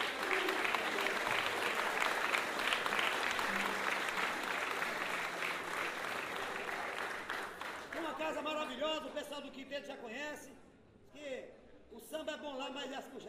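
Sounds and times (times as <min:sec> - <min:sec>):
audience applause: 0:00.0 - 0:08.5
speech: 0:09.0 - 0:11.5, 0:12.1 - 0:13.2.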